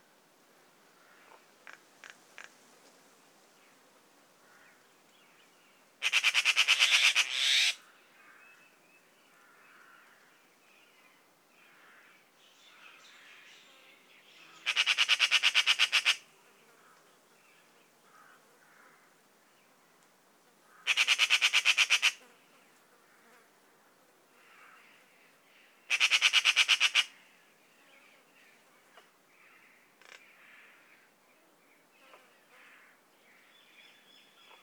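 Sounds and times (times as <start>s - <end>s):
magpie calling: 6.0s - 7.8s, 14.6s - 16.2s, 20.7s - 22.2s, 25.9s - 27.2s.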